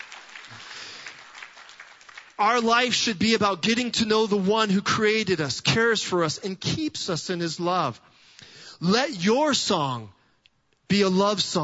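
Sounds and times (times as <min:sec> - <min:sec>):
audience clapping: 0:00.0 - 0:02.9
speech: 0:02.4 - 0:08.2, 0:08.8 - 0:10.2, 0:10.9 - 0:11.6.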